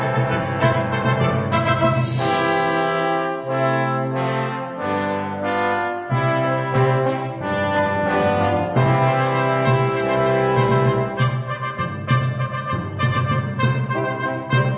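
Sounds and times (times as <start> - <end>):
brass choir fanfare: 0.0 - 14.7.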